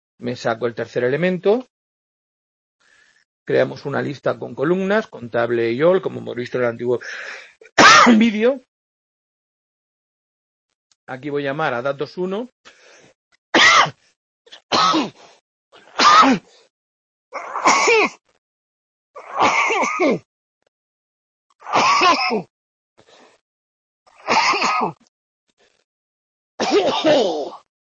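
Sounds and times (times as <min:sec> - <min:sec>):
speech: 0:00.2 - 0:01.7, 0:03.5 - 0:08.7, 0:11.1 - 0:12.8, 0:19.9 - 0:20.3, 0:21.7 - 0:22.5, 0:24.8 - 0:25.1, 0:26.7 - 0:27.6
coughing: 0:07.6 - 0:08.3, 0:13.6 - 0:15.2, 0:15.8 - 0:16.5, 0:17.3 - 0:18.2, 0:19.2 - 0:20.3, 0:21.6 - 0:22.5, 0:24.1 - 0:25.0, 0:26.6 - 0:27.7.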